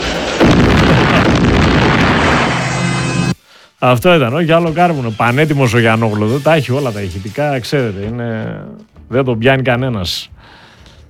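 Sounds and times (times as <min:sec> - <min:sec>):
steam boiler explosion: 0:00.0 - 0:03.4
speech: 0:03.8 - 0:10.3.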